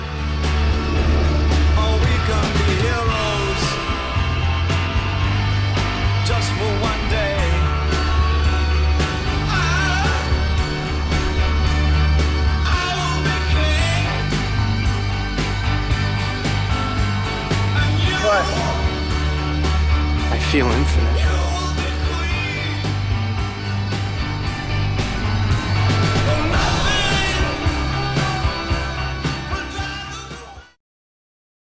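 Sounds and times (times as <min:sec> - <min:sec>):
song: 0:00.1 - 0:30.7.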